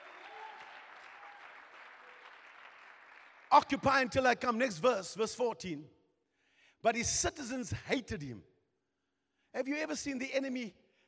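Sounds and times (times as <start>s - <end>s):
audience clapping hands: 0.0s - 4.0s
speech: 3.5s - 6.0s, 6.8s - 8.5s, 9.5s - 10.8s.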